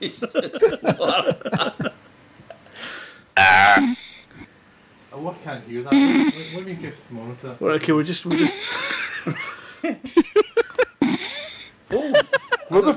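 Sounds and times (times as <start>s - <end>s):
speech: 0.0s - 1.6s, 6.7s - 9.5s
laughter: 0.0s - 2.0s, 8.3s - 11.0s, 11.9s - 12.9s
person snoring: 3.6s - 4.4s, 5.9s - 6.6s, 8.3s - 9.1s, 11.0s - 11.8s.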